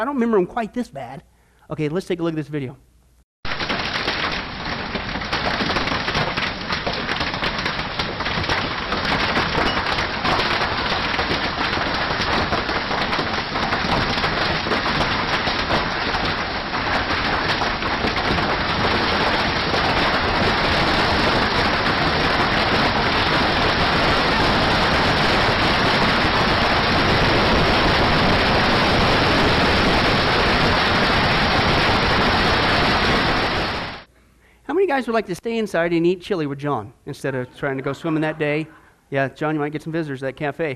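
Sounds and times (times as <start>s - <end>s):
speech: 0.0s - 2.9s, 35.0s - 40.7s
hailstorm with hailstones pounding down: 3.5s - 34.1s.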